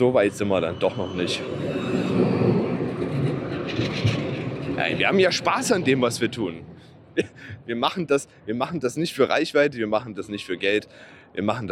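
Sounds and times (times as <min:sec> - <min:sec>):
speech: 0:00.0 - 0:02.3, 0:04.8 - 0:11.7
train or tram passing by: 0:00.0 - 0:07.3.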